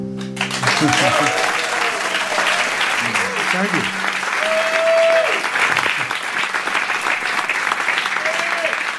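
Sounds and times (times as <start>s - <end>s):
concert audience applause: 0.2s - 8.9s
laughter: 0.4s - 4.3s, 5.6s - 6.3s
speech: 0.8s - 1.3s, 3.6s - 4.1s.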